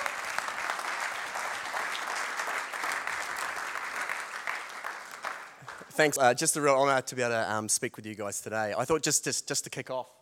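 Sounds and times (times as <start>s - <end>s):
audience applause welcoming a speaker: 0.0s - 5.9s
speech: 6.0s - 10.2s.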